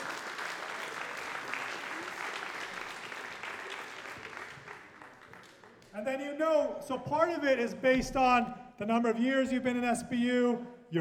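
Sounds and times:
audience round of applause: 0:00.0 - 0:05.9
speech: 0:06.0 - 0:10.9.

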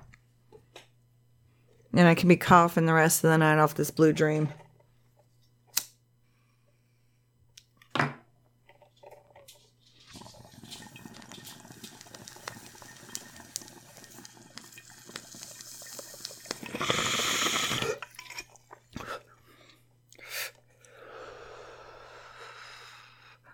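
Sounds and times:
speech: 0:02.0 - 0:04.6
water bubbling in a bong: 0:10.1 - 0:18.0.

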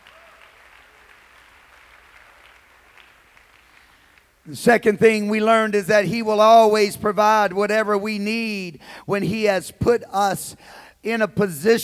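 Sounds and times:
audience clapping hands: 0:00.0 - 0:04.5
speech: 0:04.5 - 0:11.8.

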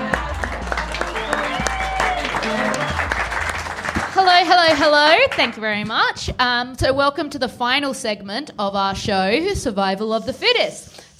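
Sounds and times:
low throbbing bass line: 0:00.0 - 0:04.4
audience clapping and cheering at a live science comedy show at Fringe World Perth 2021: 0:00.0 - 0:05.8
speech: 0:04.4 - 0:11.1.

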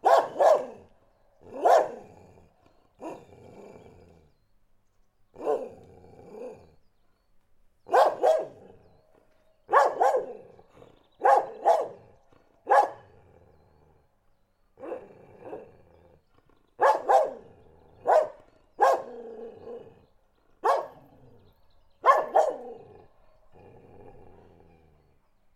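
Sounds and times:
dog barking: 0:00.0 - 0:02.1, 0:05.4 - 0:05.7, 0:07.9 - 0:08.8, 0:09.7 - 0:10.6, 0:11.2 - 0:13.1, 0:14.8 - 0:15.6, 0:16.8 - 0:19.8, 0:20.6 - 0:21.1, 0:22.0 - 0:23.0.

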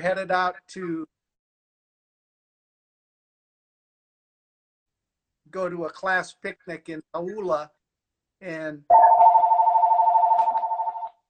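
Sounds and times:
speech: 0:00.0 - 0:01.2, 0:05.5 - 0:07.8, 0:08.4 - 0:09.0
phone ringing with an electronic trill: 0:08.9 - 0:11.2.

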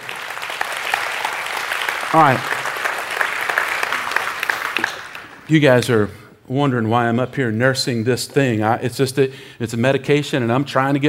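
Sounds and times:
audience applauding: 0:00.0 - 0:05.6
speech: 0:02.1 - 0:02.6, 0:05.5 - 0:11.0.

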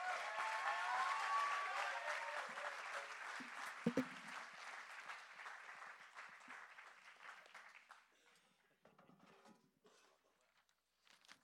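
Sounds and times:
audience applause: 0:00.0 - 0:08.0.

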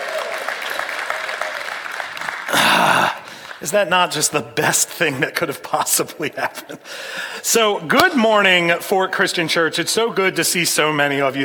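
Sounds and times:
audience applause: 0:00.0 - 0:03.7
speech: 0:03.6 - 0:11.4.

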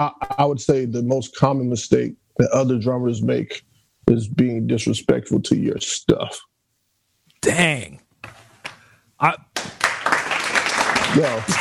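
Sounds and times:
speech: 0:00.0 - 0:06.5, 0:07.4 - 0:08.0, 0:09.2 - 0:09.5, 0:11.2 - 0:11.5
hands clapping: 0:09.5 - 0:11.5.

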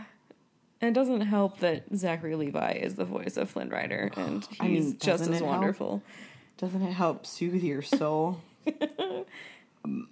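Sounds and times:
speech: 0:00.8 - 0:10.0
person burping: 0:04.1 - 0:04.7.

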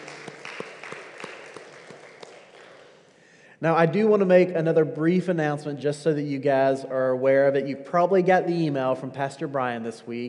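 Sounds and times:
short round of applause: 0:00.0 - 0:03.2
speech: 0:03.6 - 0:10.2.

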